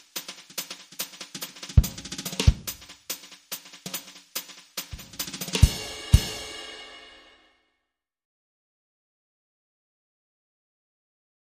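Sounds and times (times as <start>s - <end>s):
jazz drums played with brushes in a stereo loop: 0.0s - 7.2s.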